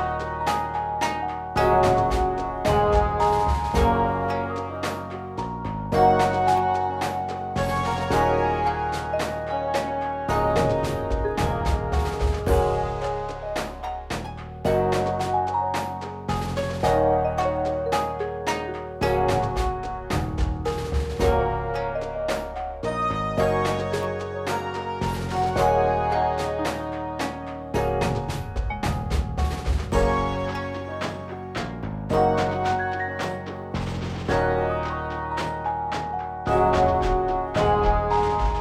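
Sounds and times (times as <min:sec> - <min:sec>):
happy romantic cinematic wedding music: 0:00.0 - 0:38.6.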